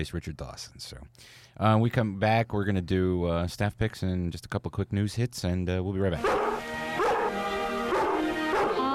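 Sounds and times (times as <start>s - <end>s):
speech: 0.0s - 6.5s
dog barking: 6.2s - 8.8s.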